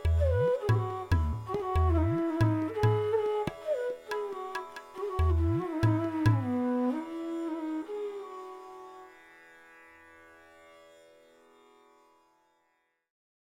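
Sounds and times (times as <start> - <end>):
flute playing a raga: 0.0 - 9.7.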